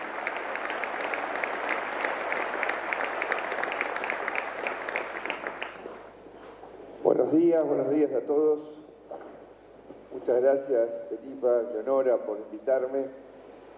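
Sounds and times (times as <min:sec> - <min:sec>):
audience applause: 0:00.0 - 0:06.1
speech: 0:07.1 - 0:08.8, 0:10.2 - 0:13.2.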